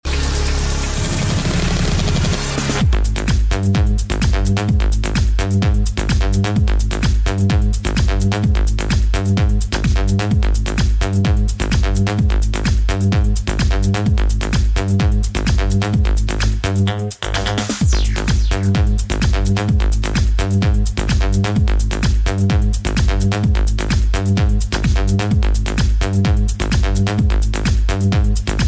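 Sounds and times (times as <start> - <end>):
electro music: 0.0 - 28.6.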